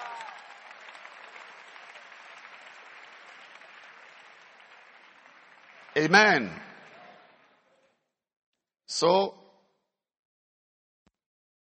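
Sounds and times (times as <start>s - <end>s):
audience clapping: 0.0s - 8.0s
speech: 6.0s - 6.7s, 9.0s - 9.4s.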